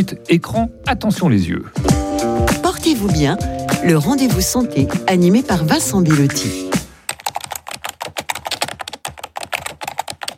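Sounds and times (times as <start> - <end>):
speech: 0.0 - 2.0, 2.7 - 6.7
rapid typing on a computer keyboard: 7.1 - 10.3.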